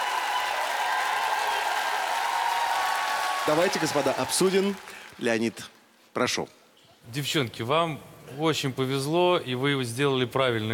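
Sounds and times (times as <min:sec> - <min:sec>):
audience applause: 0:00.0 - 0:05.7
speech: 0:03.4 - 0:10.7.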